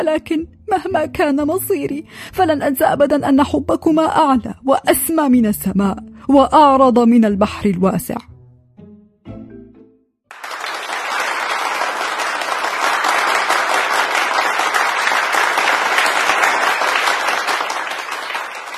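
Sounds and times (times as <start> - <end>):
speech: 0.0 - 8.3
loud applause in an indoor room: 10.3 - 18.7.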